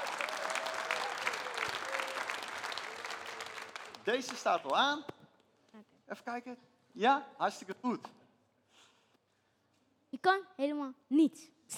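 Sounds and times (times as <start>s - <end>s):
audience applause: 0.0s - 4.8s
speech: 4.0s - 5.1s, 6.1s - 8.2s, 10.2s - 11.7s.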